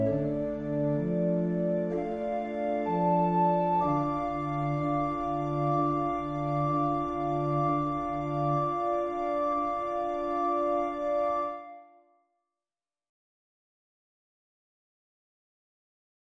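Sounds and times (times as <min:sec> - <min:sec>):
organ music: 0:00.0 - 0:11.8.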